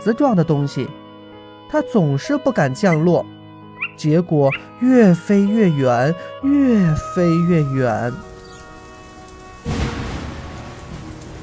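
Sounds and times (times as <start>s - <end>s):
speech: 0.0s - 1.0s, 1.7s - 3.4s, 4.0s - 8.3s
heavy rain: 8.0s - 11.4s
thunderstorm with heavy rain: 8.3s - 11.4s.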